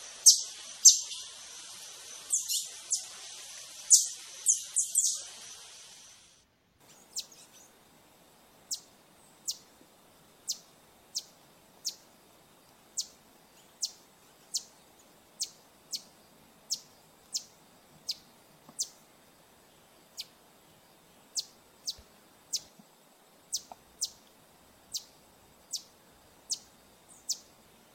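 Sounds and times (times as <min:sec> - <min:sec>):
Green honeycreeper chip calls: 0:00.0 - 0:05.7, 0:06.8 - 0:07.8, 0:08.7 - 0:09.7, 0:10.4 - 0:12.1, 0:13.0 - 0:14.8, 0:15.4 - 0:16.1, 0:16.7 - 0:19.0, 0:21.3 - 0:22.8, 0:23.5 - 0:24.2, 0:24.9 - 0:25.9, 0:26.5 - 0:27.5
faint hiss: 0:00.0 - 0:27.9.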